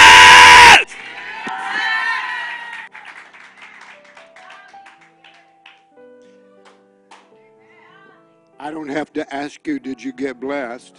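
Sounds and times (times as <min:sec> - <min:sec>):
shouts and whoops: 0:00.0 - 0:02.9
audience clapping and cheering in praise: 0:01.4 - 0:05.8
speech: 0:08.8 - 0:10.9.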